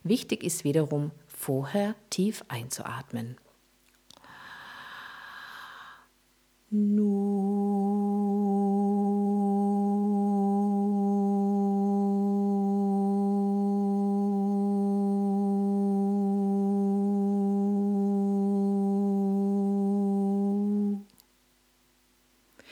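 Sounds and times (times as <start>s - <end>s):
speech: 0.0s - 3.4s, 6.7s - 7.2s
sustained sung vocal tone on the syllable No: 6.7s - 21.1s.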